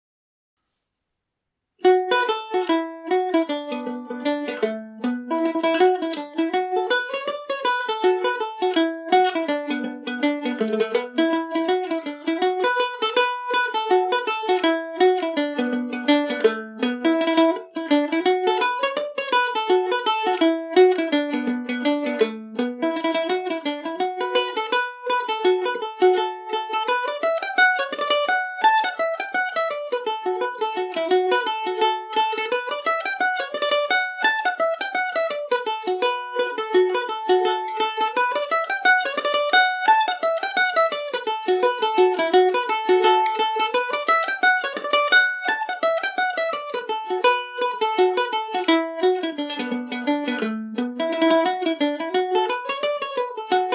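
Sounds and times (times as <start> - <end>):
Irish mandolin playing: 1.8 - 53.7.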